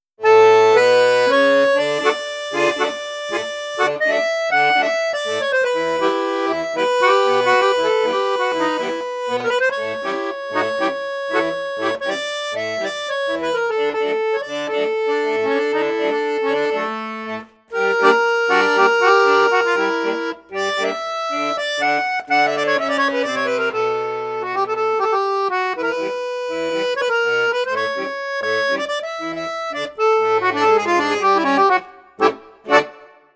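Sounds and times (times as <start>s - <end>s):
accordion on bassoon and flute register: 0.0s - 33.3s.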